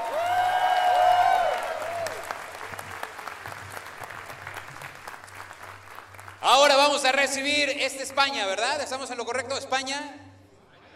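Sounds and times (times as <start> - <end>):
audience applause: 0.0 - 7.0
speech: 7.1 - 10.3.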